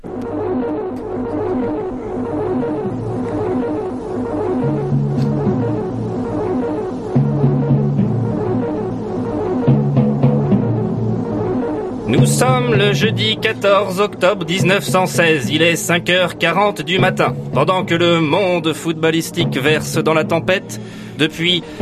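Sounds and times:
throbbing low hum of a small radio: 0:00.0 - 0:13.8
small radio static crackling while being tuned: 0:00.0 - 0:18.2
droning tones shifting as the radio dial moves: 0:00.0 - 0:21.7
speech: 0:12.4 - 0:21.7.

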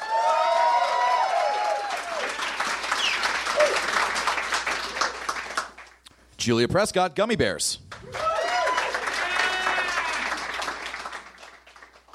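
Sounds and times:
whoops and cheers: 0:00.0 - 0:02.4, 0:08.0 - 0:10.4
crowd applauding: 0:00.0 - 0:06.0, 0:07.9 - 0:12.1
speech: 0:06.4 - 0:07.8.

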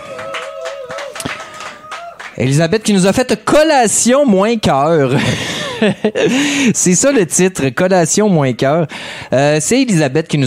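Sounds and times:
audience clapping: 0:00.0 - 0:02.6
speech: 0:02.4 - 0:10.4
laughter: 0:05.1 - 0:06.5.

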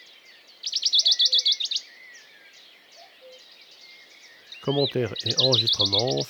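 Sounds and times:
faint bird calls: 0:00.7 - 0:06.2
Western Bonelli's warbler rattling trill: 0:04.6 - 0:06.2
speech: 0:04.7 - 0:06.2.

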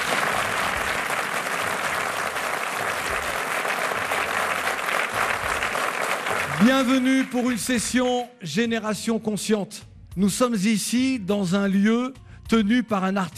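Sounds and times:
audience applause: 0:00.0 - 0:07.6
speech: 0:06.6 - 0:13.3.

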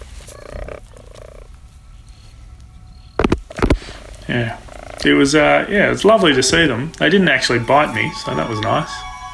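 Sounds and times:
rasping croak-like bird calls: 0:00.2 - 0:01.6, 0:03.4 - 0:06.8
speech: 0:04.3 - 0:09.1.

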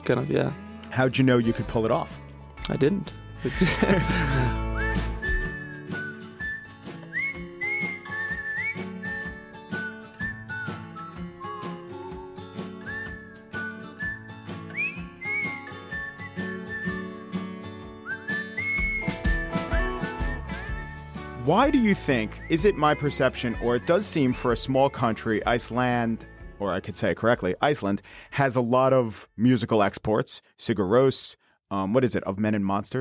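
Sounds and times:
speech: 0:00.0 - 0:04.6, 0:21.5 - 0:32.9
laughter: 0:03.4 - 0:04.8
whistling a melody: 0:03.9 - 0:26.6.

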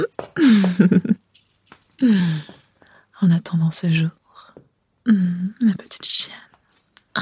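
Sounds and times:
speech: 0:00.0 - 0:01.1, 0:03.2 - 0:04.2, 0:05.0 - 0:06.5
keys jangling and clinking: 0:00.0 - 0:02.0.

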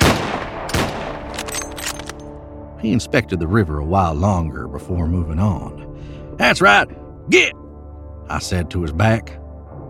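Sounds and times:
Colt Dragoon revolver gunshots at the ground: 0:00.0 - 0:01.4
speech: 0:02.8 - 0:07.6, 0:08.3 - 0:09.4.

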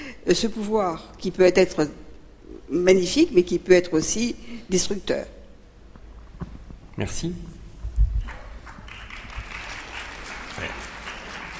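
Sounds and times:
speech: 0:00.2 - 0:02.0, 0:02.7 - 0:05.4, 0:07.0 - 0:07.6
audience applauding: 0:08.3 - 0:11.5.

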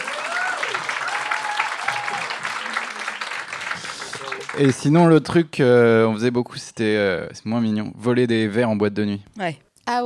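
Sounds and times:
audience applause: 0:00.0 - 0:05.3
speech: 0:04.6 - 0:10.0.

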